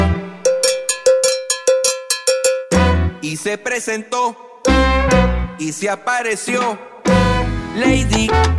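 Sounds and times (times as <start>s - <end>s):
bass-heavy band music: 0.0s - 1.4s, 2.4s - 3.4s, 4.7s - 5.7s, 6.5s - 8.5s
cowbell struck in a salsa rhythm: 0.0s - 3.0s, 4.7s - 5.3s
speech: 3.3s - 6.9s, 7.8s - 8.5s.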